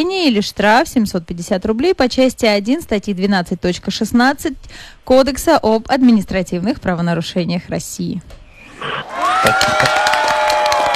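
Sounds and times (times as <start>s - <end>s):
speech: 0.0s - 10.0s
studio audience cheering voices: 9.0s - 10.9s
studio audience applause effect after a correct quiz answer: 9.1s - 10.9s.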